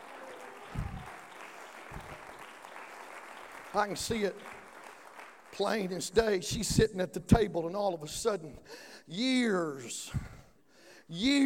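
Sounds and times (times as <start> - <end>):
audience clapping hands: 0.0 - 6.4
speech: 3.8 - 4.6, 5.6 - 10.3, 11.1 - 11.4.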